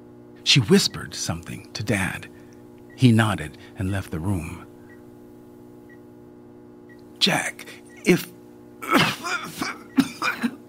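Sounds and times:
speech: 0.4 - 2.4, 3.0 - 4.7, 7.2 - 8.3
woman coughing in a fit: 8.8 - 10.6.

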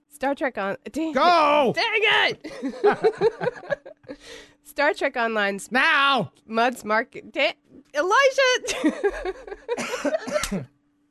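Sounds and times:
speech: 0.2 - 10.7
laughter: 2.4 - 4.2, 8.6 - 10.6
coughing: 9.7 - 10.8.

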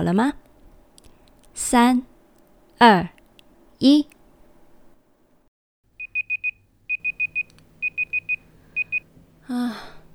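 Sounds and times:
speech: 0.0 - 0.4, 1.6 - 2.1, 2.8 - 3.2, 3.8 - 4.2, 9.5 - 9.9
alarm clock ringing: 6.0 - 9.1.

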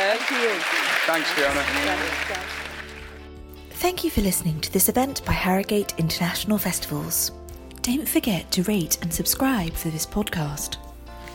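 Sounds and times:
audience applause for panelists: 0.0 - 3.3
speech: 0.2 - 2.7, 3.8 - 10.8.

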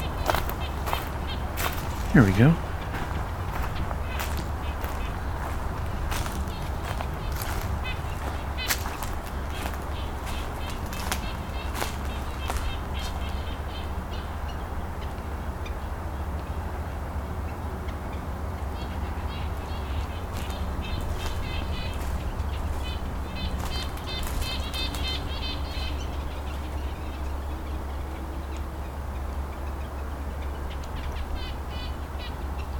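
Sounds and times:
red-breasted nuthatch calls: 0.0 - 14.6, 19.1 - 28.2
low rumbling background: 0.0 - 32.7
speech: 2.2 - 2.7.

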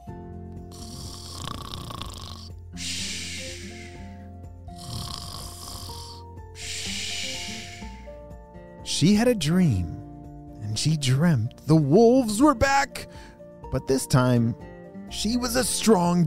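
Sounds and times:
soft music: 0.0 - 16.2
cartoonish snoring sound effect: 0.7 - 8.1
speech: 9.0 - 10.0, 10.8 - 16.2.

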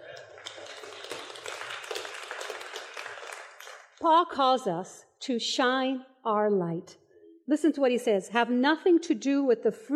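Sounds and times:
audience clapping: 0.0 - 4.0
speech: 4.0 - 9.9.

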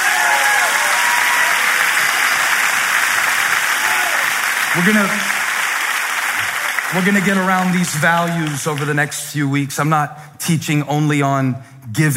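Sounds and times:
audience clapping hands: 0.0 - 9.4
speech: 4.8 - 5.3, 6.9 - 12.1.

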